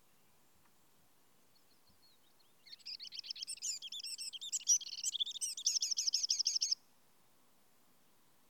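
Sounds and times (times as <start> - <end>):
Eurasian wren Troglodytes troglodytes song with high trills and twittering: 1.5 - 6.8.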